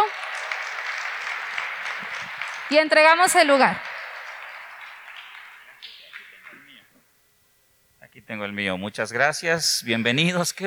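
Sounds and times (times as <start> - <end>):
audience applause: 0.0 - 6.8
speech: 2.7 - 3.9, 8.4 - 10.6.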